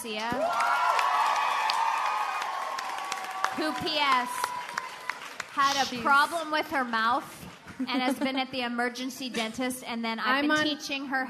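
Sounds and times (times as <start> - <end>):
speech: 0.0 - 0.8, 3.6 - 4.4, 5.6 - 11.2
live studio audience clapping for a guest: 0.0 - 7.6
live studio audience whooping: 0.4 - 6.0.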